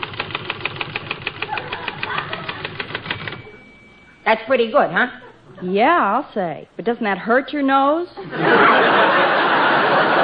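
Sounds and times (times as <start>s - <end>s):
voice imitating a typewriter typing: 0.0s - 3.5s
laughter: 1.5s - 3.6s, 5.1s - 5.9s, 8.2s - 10.2s
speech: 4.2s - 10.2s.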